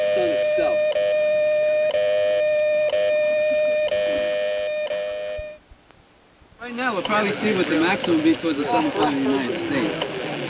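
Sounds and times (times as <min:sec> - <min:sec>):
radio time signal electronic tone: 0:00.0 - 0:05.6
faint static: 0:00.0 - 0:10.4
speech: 0:06.9 - 0:10.2.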